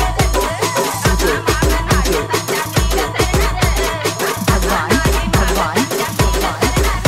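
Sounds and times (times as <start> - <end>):
Marathi DJ ringtone: 0.1 - 7.0.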